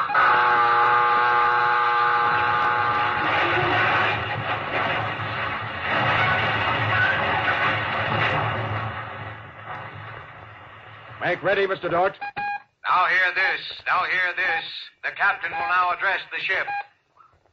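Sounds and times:
ship collision alarm buzzing horn: 0.0s - 4.1s
dense continuous rumble and clatter: 2.4s - 11.8s
speech: 11.3s - 12.4s, 13.0s - 16.8s.

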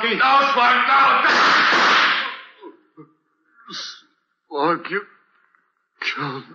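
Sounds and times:
speech: 0.0s - 2.1s, 3.7s - 5.2s, 6.0s - 6.5s
gunshot in a radio drama: 1.2s - 2.5s.

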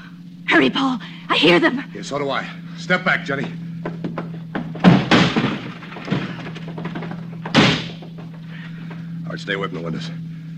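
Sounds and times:
low steady hum: 0.0s - 10.5s
speech: 0.6s - 4.0s, 9.4s - 10.2s
heavy thuds against a locked door being kicked in: 3.4s - 9.0s
loud crash: 4.8s - 8.5s.

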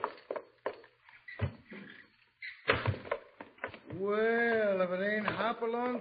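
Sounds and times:
side door opening and closing: 1.1s - 4.0s
speech: 4.0s - 5.9s.

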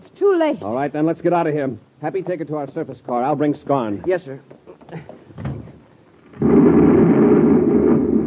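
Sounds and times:
speech: 0.3s - 5.0s
explosion: 6.2s - 8.2s.

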